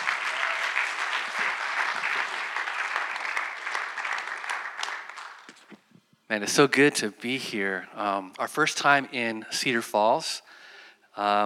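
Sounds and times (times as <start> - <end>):
audience applause: 0.0 - 5.7
speech: 6.3 - 10.6, 11.2 - 11.4.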